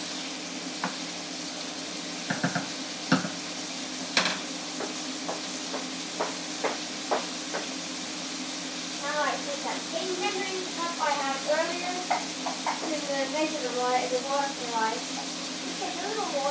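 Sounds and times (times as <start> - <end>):
chicken sizzling in a pan: 0.0 - 16.4.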